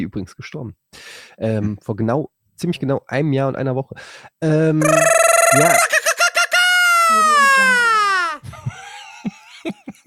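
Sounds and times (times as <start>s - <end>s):
speech: 0.0s - 6.0s
Mexican mariachi shout: 4.8s - 8.4s
laughter: 4.8s - 10.0s.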